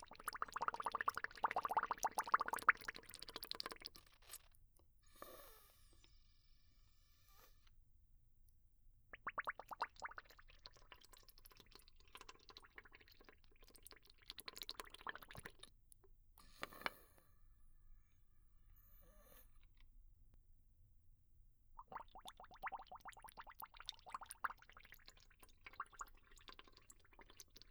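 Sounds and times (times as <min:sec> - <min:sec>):
bubbles: 0:00.0 - 0:04.4, 0:09.1 - 0:15.7, 0:21.8 - 0:27.6.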